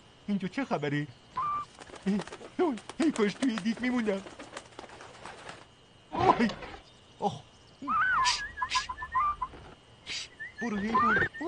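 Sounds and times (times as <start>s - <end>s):
speech: 0.4s - 1.5s, 2.1s - 4.4s, 6.3s - 7.9s, 10.6s - 11.4s
pestering bird squawking and warbling: 7.9s - 11.4s.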